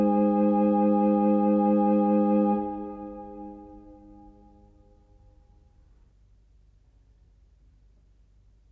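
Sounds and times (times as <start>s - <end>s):
organ Christmas chorale prelude: 0.0s - 4.6s.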